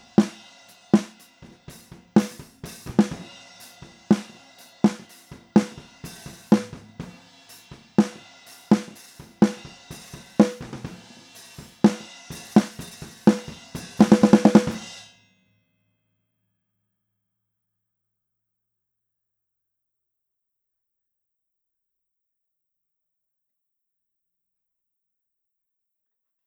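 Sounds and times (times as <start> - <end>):
snare drums recorded with SM57 microphone: 0.0 - 15.0.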